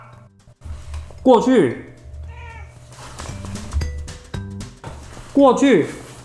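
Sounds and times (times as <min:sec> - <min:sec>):
cat meowing: 0:00.0 - 0:00.3, 0:02.1 - 0:03.7
speech: 0:01.2 - 0:01.9, 0:05.4 - 0:06.0.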